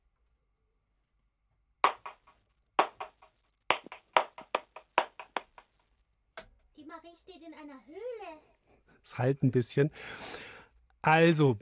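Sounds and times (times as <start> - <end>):
hand clapping a rhythm: 1.8 - 5.8
speech: 6.9 - 11.6.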